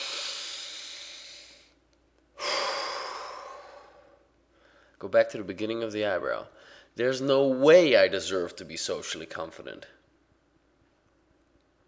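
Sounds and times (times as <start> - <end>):
person breathing: 0.0 - 1.8, 2.4 - 5.0, 6.5 - 7.0
speech: 5.0 - 10.0.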